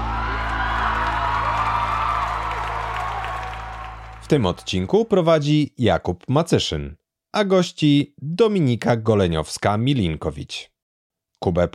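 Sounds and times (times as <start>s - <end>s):
scattered whoops: 0.0s - 4.2s
audience applause: 0.0s - 4.8s
speech: 4.3s - 10.7s, 11.4s - 11.7s.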